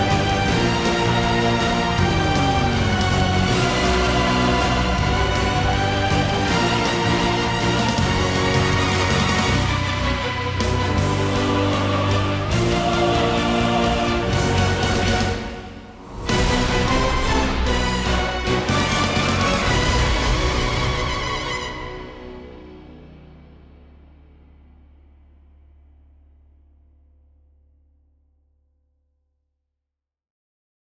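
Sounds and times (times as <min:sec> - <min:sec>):
epic orchestral cover: 0:00.0 - 0:24.1.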